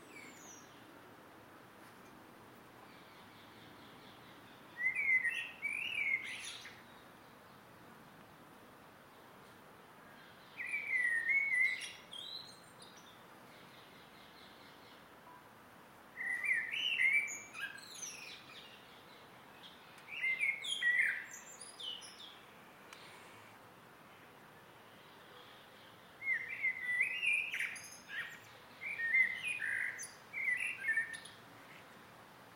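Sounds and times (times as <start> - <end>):
close blackbird singing in an evening garden: 0.0 - 0.8, 2.9 - 7.1, 10.2 - 15.0, 16.2 - 22.4, 25.4 - 31.8
evening garden birds singing: 0.0 - 0.9, 2.8 - 7.7, 10.0 - 15.1, 16.2 - 23.2, 24.8 - 32.0.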